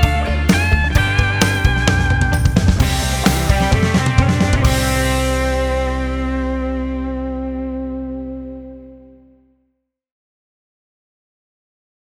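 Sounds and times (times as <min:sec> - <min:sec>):
majestic rock music at 130 BPM: 0:00.0 - 0:09.2.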